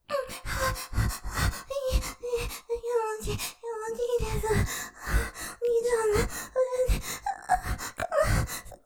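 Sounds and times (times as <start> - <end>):
person panting: 0.2 - 8.7.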